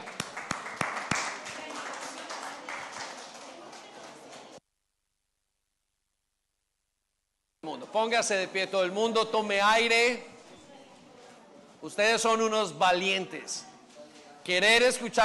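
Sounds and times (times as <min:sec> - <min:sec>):
crowd applauding loudly: 0:00.0 - 0:04.6
speech: 0:07.9 - 0:10.3, 0:11.8 - 0:13.7, 0:14.4 - 0:15.2.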